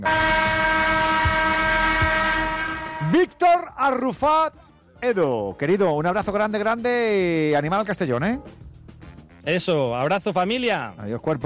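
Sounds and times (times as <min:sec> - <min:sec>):
train horn: 0:00.0 - 0:03.4
speech: 0:03.2 - 0:08.6, 0:09.4 - 0:11.4.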